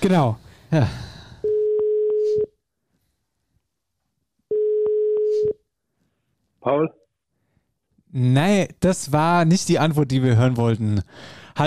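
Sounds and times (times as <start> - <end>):
speech: 0.0 - 1.1, 6.6 - 7.0, 8.1 - 11.6
ringback tones on a phone line: 1.4 - 2.5, 4.5 - 5.6.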